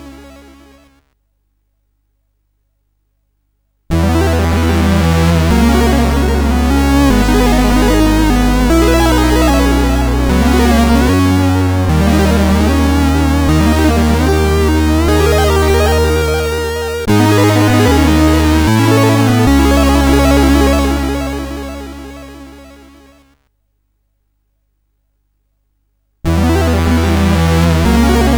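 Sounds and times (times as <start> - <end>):
game over chiptune music from a SID sound chip: 0.0 - 1.0, 3.9 - 23.3, 26.3 - 28.3.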